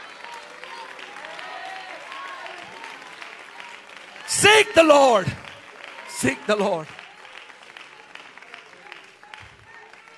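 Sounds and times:
audience clapping: 0.0 - 10.1
voices shouting and calling out: 4.2 - 7.0
speech: 4.4 - 5.4, 6.2 - 7.0.

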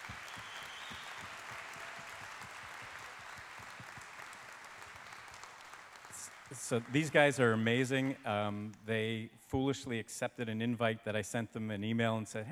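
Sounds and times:
audience applause: 0.0 - 8.7
speech: 6.6 - 12.4.

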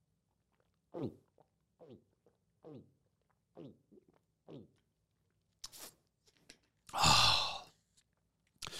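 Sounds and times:
person gulping while drinking: 0.5 - 4.9, 6.5 - 7.8.

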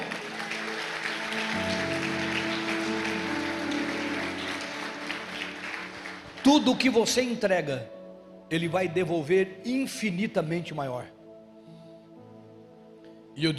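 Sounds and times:
audience applause: 0.0 - 7.4
speech: 6.5 - 11.2, 13.4 - 13.5.

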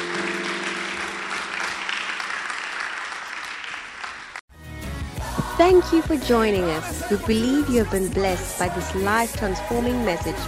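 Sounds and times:
crowd applause: 0.0 - 4.4
speech: 5.6 - 10.4.

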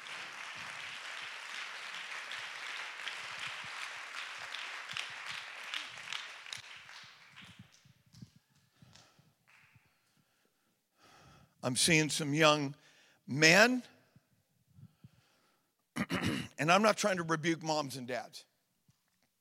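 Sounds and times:
audience clapping hands: 0.0 - 10.2
speech: 11.6 - 13.9, 16.6 - 18.5.

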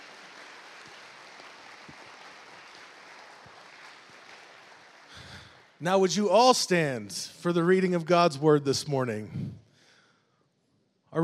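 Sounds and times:
audience applause: 0.0 - 5.8
speech: 5.8 - 9.6.

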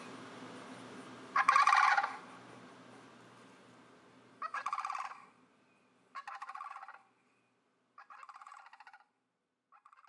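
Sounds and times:
sandhill crane rattling calls: 1.3 - 2.3, 4.4 - 5.3, 6.2 - 7.1, 8.0 - 9.1, 9.8 - 10.0.

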